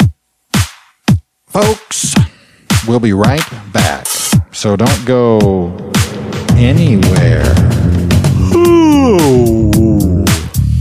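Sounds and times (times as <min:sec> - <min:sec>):
speech: 0:01.6 - 0:06.0, 0:06.6 - 0:07.7
loud yawn into the microphone: 0:07.9 - 0:10.5.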